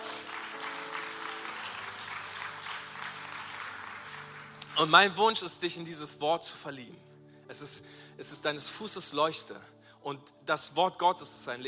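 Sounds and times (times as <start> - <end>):
crowd applauding: 0.0 - 5.5
speech: 4.8 - 11.6.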